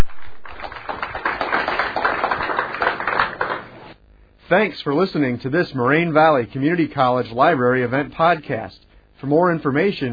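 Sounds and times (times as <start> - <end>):
crowd applauding: 0.0 - 4.0
speech: 4.5 - 10.1.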